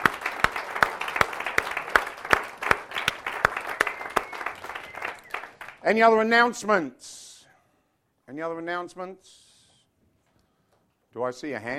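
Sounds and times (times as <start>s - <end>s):
audience applause: 0.0s - 5.8s
speech: 5.8s - 7.2s, 8.3s - 9.4s, 11.2s - 11.7s.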